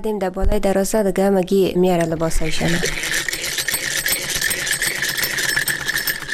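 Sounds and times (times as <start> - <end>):
speech: 0.0 - 3.2
sewing machine running: 2.0 - 6.3.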